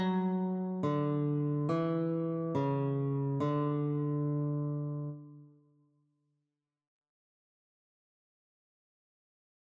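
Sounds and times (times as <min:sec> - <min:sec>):
guitar notes: 0:00.0 - 0:05.6.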